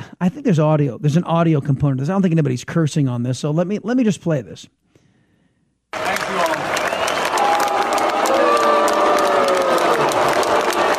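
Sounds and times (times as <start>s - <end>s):
speech: 0.2s - 4.8s
scattered claps: 5.9s - 10.9s
large crowd booing at a graduation ceremony: 6.0s - 10.9s.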